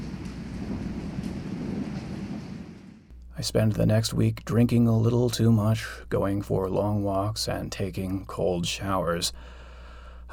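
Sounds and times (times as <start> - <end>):
pouring rain: 0.0 - 3.1
clap of thunder at night: 0.0 - 3.2
speech: 3.4 - 9.6.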